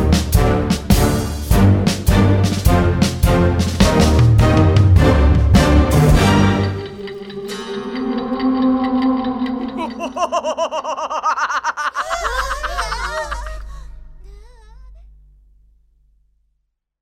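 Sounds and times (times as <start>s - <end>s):
music backing track: 0.0s - 10.5s
laughter: 9.6s - 14.6s.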